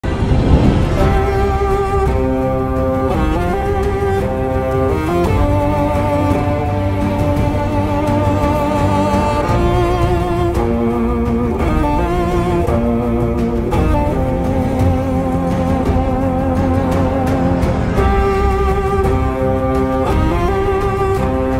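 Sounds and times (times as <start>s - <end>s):
instrumental music: 0.0s - 21.5s.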